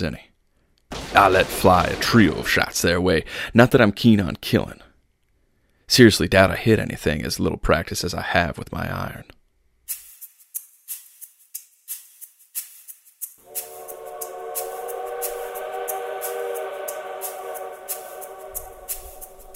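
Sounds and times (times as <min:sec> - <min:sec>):
speech: 0:00.0 - 0:00.3, 0:01.1 - 0:04.9, 0:05.9 - 0:10.0
distant train whistle: 0:13.4 - 0:19.5.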